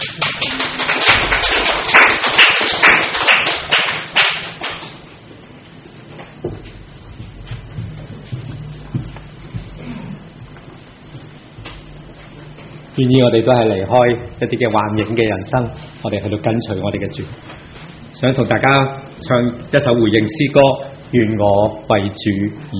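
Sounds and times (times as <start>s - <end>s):
audience applause: 0.0s - 5.0s
speech: 13.0s - 17.6s, 18.2s - 22.7s.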